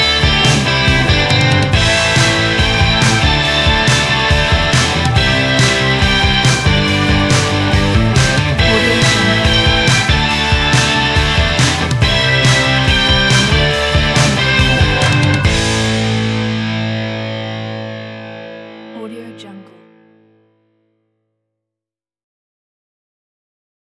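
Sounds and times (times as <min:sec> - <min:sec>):
energetic motivational rock music: 0:00.0 - 0:19.1.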